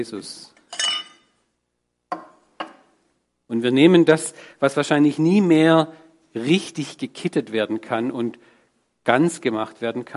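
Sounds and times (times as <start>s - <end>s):
speech: 0.0s - 0.6s, 3.5s - 10.1s
glass shards clinking as they are picked up: 0.7s - 1.3s.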